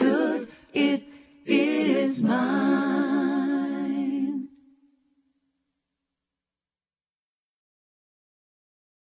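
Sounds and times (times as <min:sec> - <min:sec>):
receiving chant: 0:00.0 - 0:04.6.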